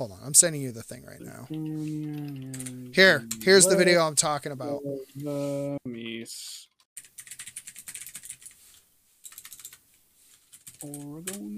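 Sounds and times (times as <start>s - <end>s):
speech: 0.0s - 6.7s, 10.8s - 11.5s
typing on a computer keyboard: 7.0s - 8.6s, 9.3s - 11.5s.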